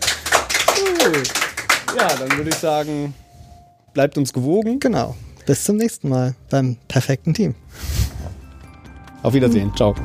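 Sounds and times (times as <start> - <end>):
audience clapping: 0.0 - 2.9
speech: 1.0 - 3.2, 4.0 - 8.0, 9.2 - 10.0.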